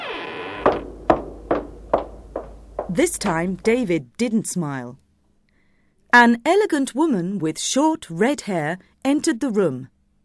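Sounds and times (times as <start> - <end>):
door creaking open: 0.0 - 3.8
hard knocks or thuds: 0.6 - 4.0
speech: 2.9 - 5.0, 6.1 - 9.9.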